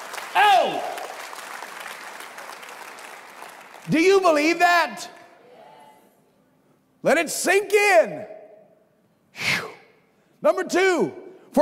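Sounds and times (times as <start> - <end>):
audience clapping hands: 0.0 - 5.3
speech: 0.4 - 1.0, 3.9 - 5.2, 7.0 - 8.4, 10.4 - 11.5.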